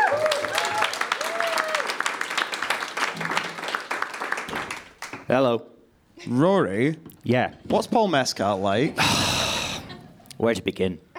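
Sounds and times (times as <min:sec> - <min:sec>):
live audience clapping at an Edinburgh Film Festival event: 0:00.0 - 0:05.4
speech: 0:05.3 - 0:09.3, 0:10.4 - 0:11.1.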